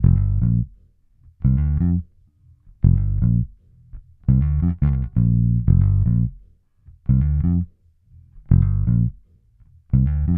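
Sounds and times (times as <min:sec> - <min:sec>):
hip-hop bass: 0:00.0 - 0:00.8, 0:02.8 - 0:03.5, 0:04.3 - 0:06.4, 0:07.1 - 0:07.7, 0:08.5 - 0:09.2, 0:09.9 - 0:10.3.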